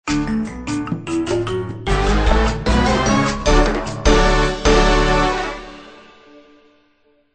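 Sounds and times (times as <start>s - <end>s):
victory music: 0.1s - 6.8s.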